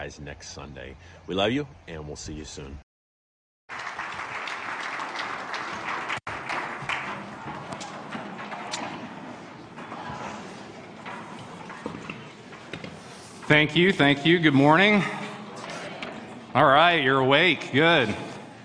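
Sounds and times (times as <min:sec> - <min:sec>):
speech: 0:00.0 - 0:02.9, 0:13.5 - 0:15.2, 0:16.5 - 0:18.3
audience clapping in welcome: 0:03.7 - 0:08.8.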